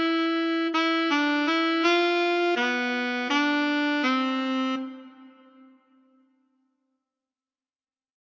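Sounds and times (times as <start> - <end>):
solo alto saxophone: 0.0 - 6.3.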